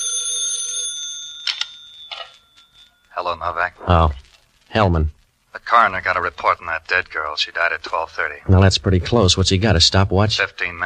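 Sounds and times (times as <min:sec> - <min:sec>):
telephone bell ringing: 0:00.0 - 0:03.2
speech: 0:03.2 - 0:10.8.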